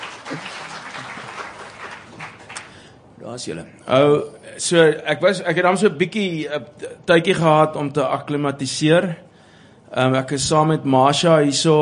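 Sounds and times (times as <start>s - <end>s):
audience clapping: 0.0s - 2.9s
speech: 3.3s - 9.3s, 9.9s - 11.8s.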